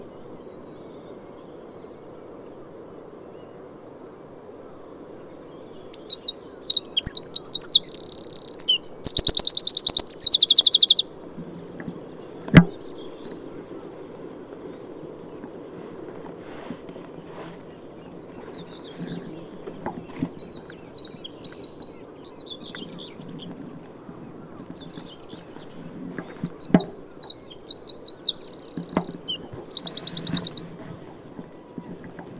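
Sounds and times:
Eurasian wren song: 0:00.0 - 0:32.3
low noise: 0:00.0 - 0:32.3.

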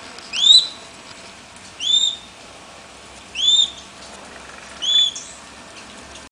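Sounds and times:
background hiss: 0:00.0 - 0:06.3
bird whistled calls: 0:00.3 - 0:00.8, 0:01.8 - 0:02.4, 0:03.3 - 0:03.9, 0:04.8 - 0:05.4.

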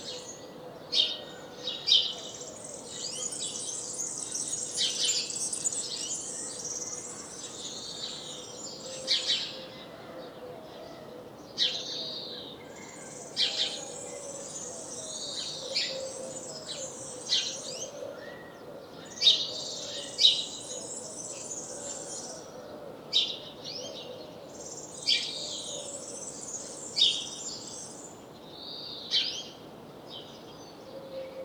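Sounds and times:
background noise: 0:00.0 - 0:31.4
house sparrow chirping: 0:02.9 - 0:07.2.

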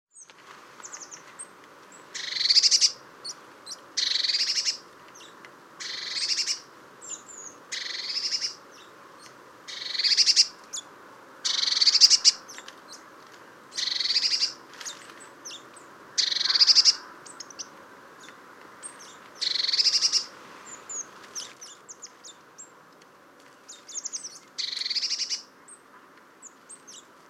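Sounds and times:
Eurasian blue tit scolding with churring buzzes: 0:02.2 - 0:08.9, 0:09.7 - 0:13.0, 0:13.8 - 0:14.6, 0:15.4 - 0:22.7, 0:23.7 - 0:25.8.

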